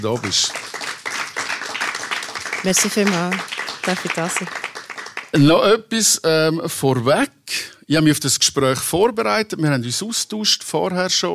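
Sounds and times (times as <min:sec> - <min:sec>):
speech: 0:00.0 - 0:00.8, 0:02.6 - 0:04.6, 0:05.3 - 0:11.3
applause: 0:00.0 - 0:05.8.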